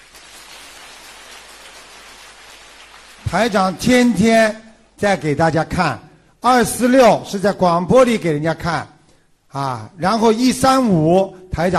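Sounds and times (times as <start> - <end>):
crowd applause: 0.0 - 3.4
speech: 3.2 - 8.9, 9.5 - 11.7.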